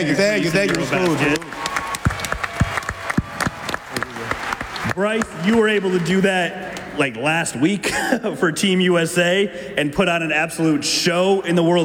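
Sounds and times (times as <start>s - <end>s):
speech: 0.0s - 1.7s, 5.0s - 11.8s
applause: 0.4s - 6.5s.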